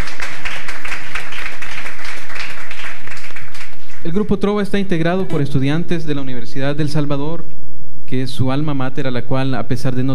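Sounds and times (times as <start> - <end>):
audience applause: 0.0 - 4.3
speech: 4.2 - 10.1.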